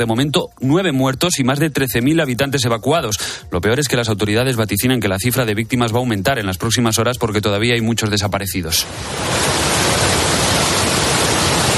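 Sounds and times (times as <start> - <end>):
speech: 0.0 - 9.7
heavy rain pouring down in Emilia-Romagna: 8.8 - 11.7.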